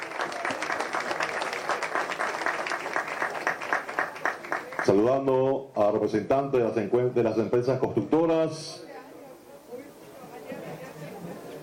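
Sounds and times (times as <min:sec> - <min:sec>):
audience applause: 0:00.0 - 0:05.0
speech: 0:04.8 - 0:08.9.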